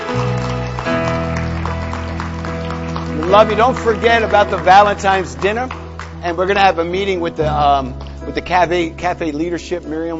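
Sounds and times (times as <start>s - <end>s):
crowd clapping: 0.0s - 9.2s
sustained musical chord: 0.2s - 10.1s
speech: 3.3s - 10.1s.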